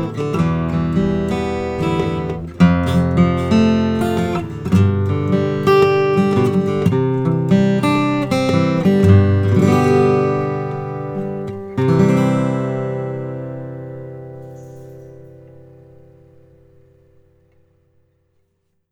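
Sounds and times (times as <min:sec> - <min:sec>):
walnut grand concert acoustic guitar: 0:00.0 - 0:18.9.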